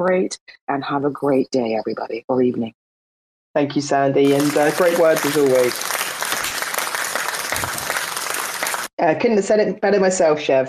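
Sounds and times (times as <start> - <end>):
speech: 0.0 - 2.8, 3.6 - 6.0, 9.0 - 10.6
applause sound effect: 4.3 - 8.9.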